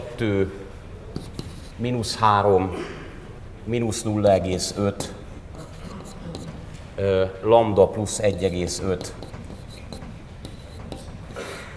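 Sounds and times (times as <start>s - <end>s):
speech: 0.2s - 0.6s, 1.8s - 3.0s, 3.6s - 5.2s, 7.0s - 9.2s
pen scratching on paper: 1.2s - 1.8s, 4.6s - 6.7s, 8.1s - 11.7s.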